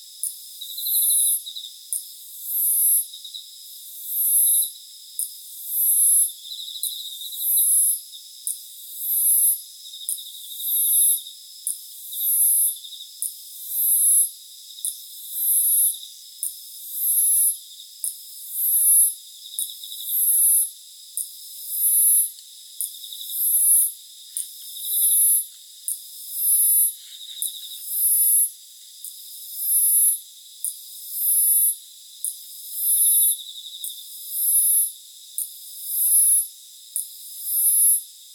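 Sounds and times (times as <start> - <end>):
Teleogryllus emma chirping: 0.0 - 38.3
Hexacentrus hareyamai chirping: 21.8 - 25.5, 26.4 - 28.4.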